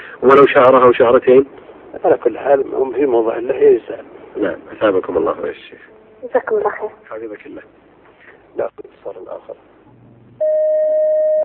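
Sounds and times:
speech: 0.2s - 7.8s, 8.6s - 9.7s
low buzzy hum: 3.9s - 11.4s
telephone line tone as a call connects: 10.4s - 11.4s.

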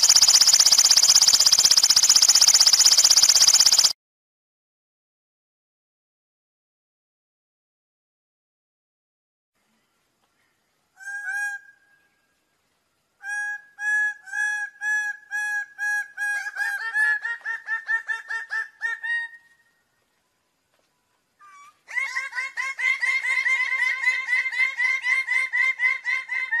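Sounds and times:
bird-of-paradise calling: 0.0s - 3.9s, 9.8s - 12.4s, 13.2s - 20.0s, 21.4s - 26.5s.

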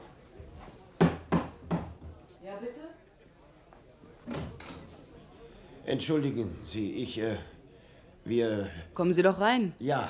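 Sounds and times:
police inspector knocking on a wooden door: 1.0s - 2.2s
speech: 5.9s - 7.5s, 8.2s - 10.0s.

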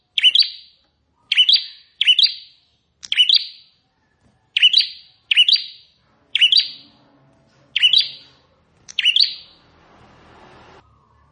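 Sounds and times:
plain prinia buzzy chirps: 0.1s - 3.8s, 4.6s - 7.0s, 7.8s - 9.6s.

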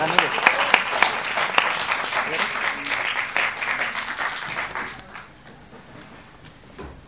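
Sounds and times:
audience applause at a music show: 0.0s - 5.3s.

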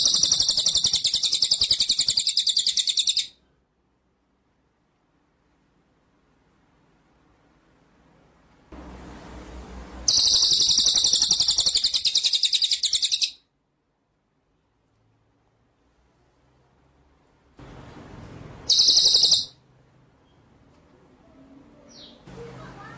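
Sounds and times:
white-rumped shama rolling trill: 0.0s - 3.2s, 10.0s - 13.3s, 18.6s - 19.5s.

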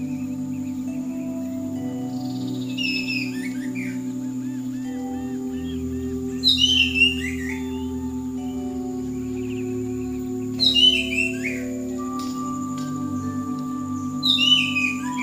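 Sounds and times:
bird chirps and twitters: 0.0s - 15.2s.

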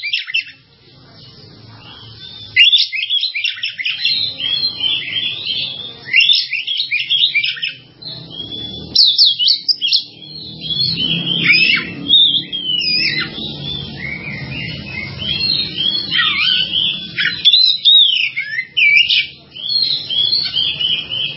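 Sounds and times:
bird twittering and warbling: 0.0s - 21.3s.

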